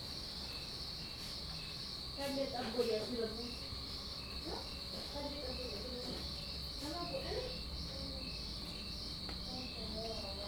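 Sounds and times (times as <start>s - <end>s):
cicada high buzzing whine: 0.1s - 10.4s.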